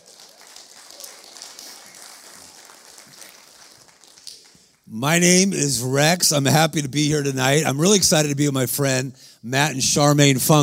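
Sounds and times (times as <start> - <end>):
crowd clapping: 0.0 - 5.2
speech: 4.9 - 10.6.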